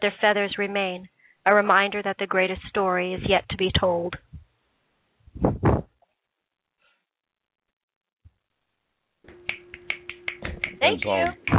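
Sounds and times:
speech: 0.0 - 4.2, 10.8 - 11.5
finger snapping as applause: 9.3 - 11.5.

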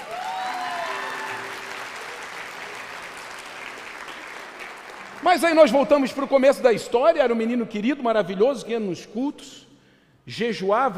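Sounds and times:
applause: 0.0 - 6.2
speech: 5.2 - 9.7, 10.3 - 10.9.

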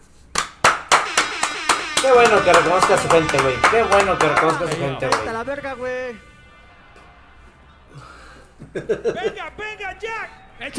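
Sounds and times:
hand claps: 0.0 - 5.5
speech: 2.0 - 6.3, 8.7 - 10.7.

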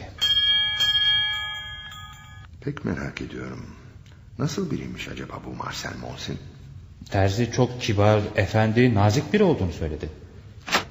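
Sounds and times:
doorbell ringing with a bright metallic chime: 0.2 - 2.5
speech: 2.6 - 3.8, 4.4 - 10.2.

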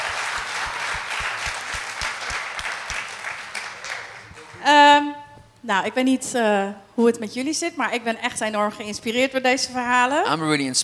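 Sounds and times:
sustained audience applause: 0.0 - 4.6
speech: 5.7 - 10.8.

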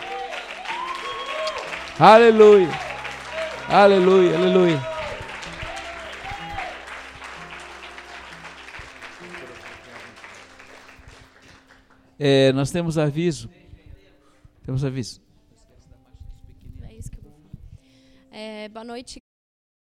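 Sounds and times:
audience applause: 0.0 - 12.2
speech: 2.0 - 2.8, 3.7 - 4.9, 12.2 - 13.6, 14.6 - 15.2, 18.4 - 19.2.

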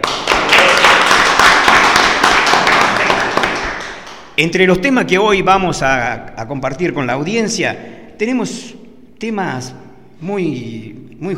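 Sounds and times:
small group applauding a new team member: 0.0 - 4.4
speech: 4.4 - 11.3.

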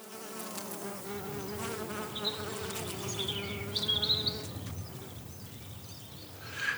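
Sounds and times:
honeybees buzzing at a beekeeper's hive in Gelderop: 0.0 - 6.7.

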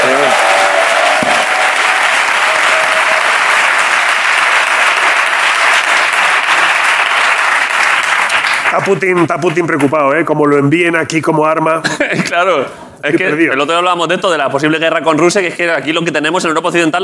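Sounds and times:
audience applause: 0.0 - 9.9
speech: 8.8 - 17.0.

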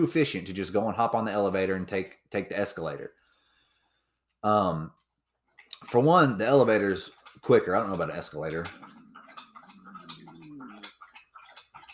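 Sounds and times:
speech: 0.0 - 3.2, 4.4 - 5.0, 5.8 - 9.0
pet drinking water: 5.7 - 11.9.

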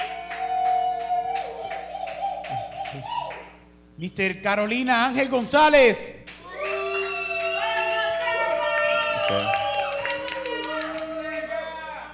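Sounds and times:
little applause: 0.0 - 3.4, 6.3 - 11.8
crowd booing: 0.0 - 3.5, 5.1 - 12.1
speech: 2.9 - 3.2, 4.0 - 6.2, 9.3 - 9.6.

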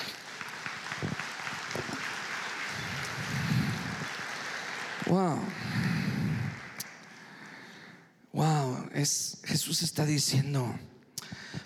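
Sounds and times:
audience applause: 0.0 - 7.4
speech: 5.1 - 5.8, 9.0 - 11.0.

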